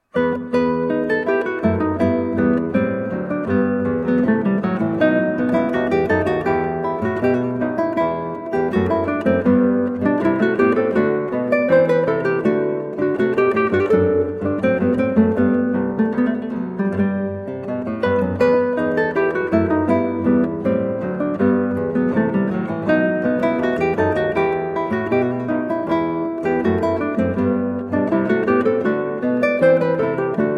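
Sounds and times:
baroque allemande played on guitar: 0:00.0 - 0:30.5.

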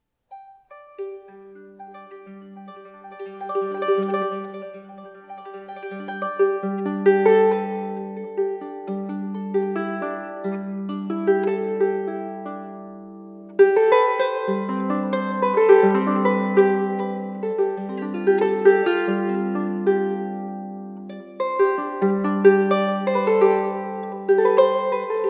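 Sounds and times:
harp improvisation in G mode: 0:00.3 - 0:25.2.

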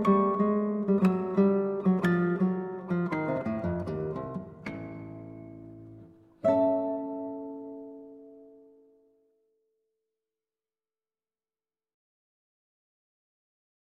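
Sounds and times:
ukulele playing a waltz: 0:00.0 - 0:08.6
guitar playing a waltz: 0:00.0 - 0:09.7.

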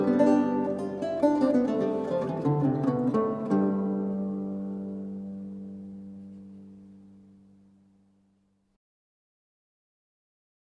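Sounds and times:
galliard lute music: 0:00.0 - 0:08.4.

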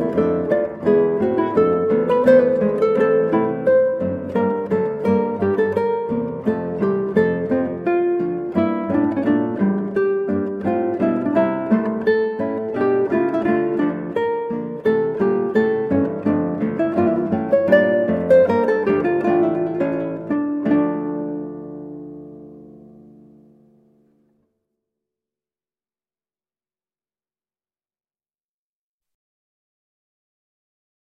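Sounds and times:
guitar playing a minuet: 0:00.0 - 0:24.4.

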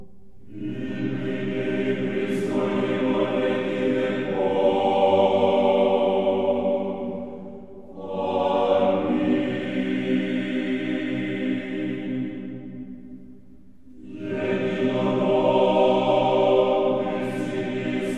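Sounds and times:
choir singing: 0:00.4 - 0:13.2, 0:13.9 - 0:18.1.

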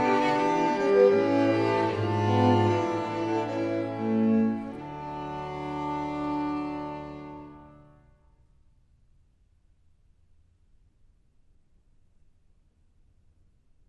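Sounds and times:
string quartet playing a fugue in E flat major: 0:00.0 - 0:07.9.

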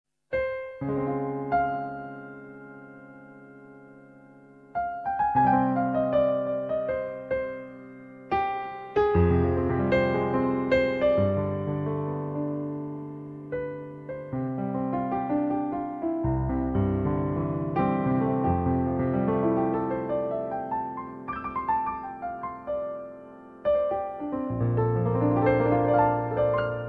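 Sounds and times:
improvised music: 0:00.3 - 0:26.8.

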